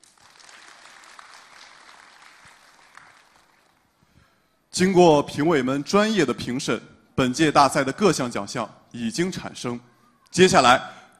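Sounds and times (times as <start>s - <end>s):
audience applause: 0.0s - 4.0s
speech: 4.8s - 11.0s.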